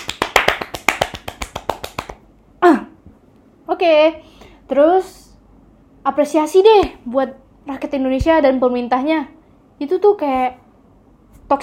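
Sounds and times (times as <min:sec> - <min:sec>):
hand claps: 0:00.0 - 0:02.3
speech: 0:03.8 - 0:05.2, 0:06.0 - 0:10.6.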